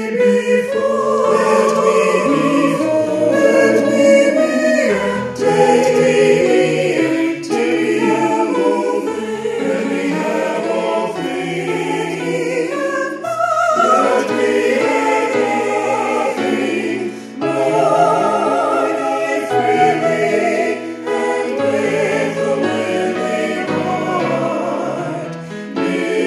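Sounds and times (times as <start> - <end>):
SATB choir singing a prayer: 0.0 - 26.2.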